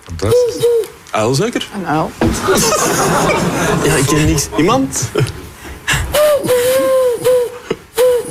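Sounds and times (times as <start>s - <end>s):
speech: 0.0s - 5.4s
pigeon cooing: 0.2s - 1.0s, 6.2s - 8.3s
laughter: 2.3s - 7.2s.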